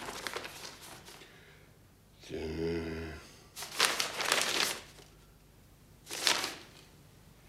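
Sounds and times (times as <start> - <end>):
papers rustling as written mandates are passed over and read: 0.0 - 1.3, 3.6 - 5.2, 6.1 - 6.9.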